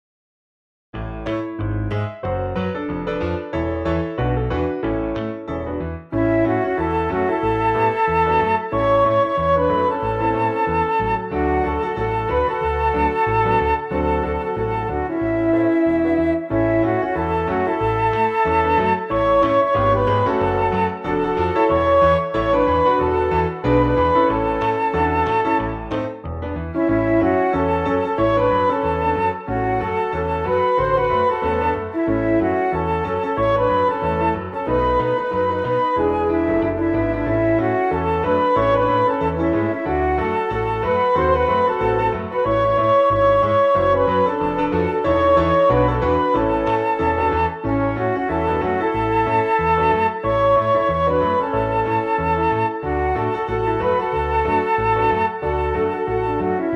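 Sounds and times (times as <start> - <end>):
piano: 0.9 - 56.7.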